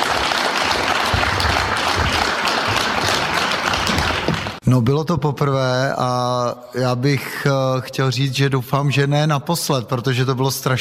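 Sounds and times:
warm audience applause: 0.0 - 4.6
speech: 4.7 - 10.8.

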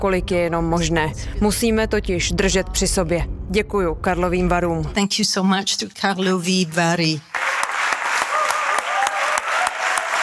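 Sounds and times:
speech: 0.0 - 7.3
large audience applause at festival ceremony: 7.3 - 10.2.

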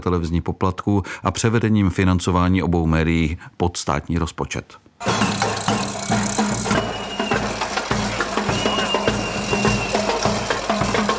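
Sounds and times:
speech: 0.0 - 5.4
crowd noise: 5.0 - 11.1
drums banging at protest march: 5.0 - 11.1
thin whistle-like squeal: 5.1 - 10.9.

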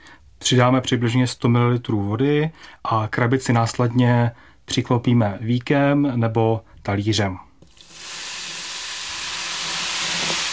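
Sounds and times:
speech: 0.5 - 7.5
chemical reaction mixture foaming and releasing gas: 7.7 - 10.5.

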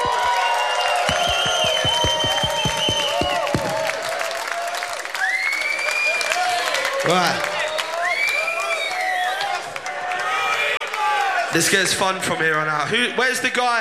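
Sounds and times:
rhythmic unison claps: 0.0 - 4.6
concert crowd in Groningen cheering: 0.0 - 11.6
high whistles from concert crowd: 0.1 - 3.9, 5.2 - 6.8, 7.6 - 9.6
speech: 7.1 - 7.5, 11.6 - 13.7.

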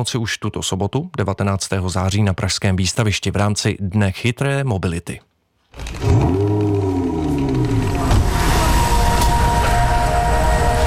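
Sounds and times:
speech: 0.0 - 6.4
electric supercar driving past with amplified chord-like hum: 5.8 - 10.8
rushing rumble: 5.8 - 10.8.

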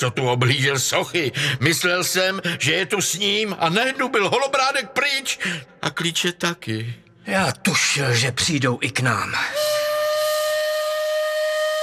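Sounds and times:
speech: 0.0 - 9.7
steam whistle hooting: 9.5 - 11.8.

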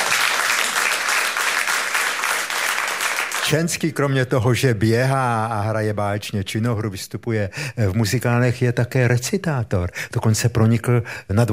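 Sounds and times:
audience applause: 0.0 - 3.6
speech: 3.5 - 11.5.

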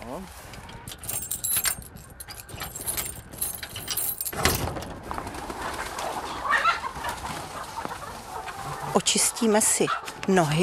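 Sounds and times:
speech: 0.2 - 1.0, 9.0 - 10.6
keys jingling: 0.8 - 4.7
metal clinking as a gate lock is worked: 0.8 - 4.7
chickens clucking and cooing: 5.0 - 10.6.

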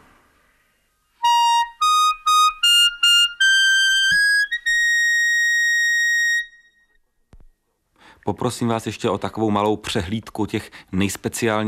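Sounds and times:
high-pitched clarinet squealing in upper register: 1.2 - 6.9
speech: 8.2 - 11.6.

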